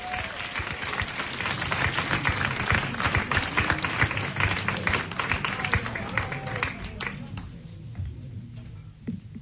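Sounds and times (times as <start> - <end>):
audience applause: 0.0 - 7.5.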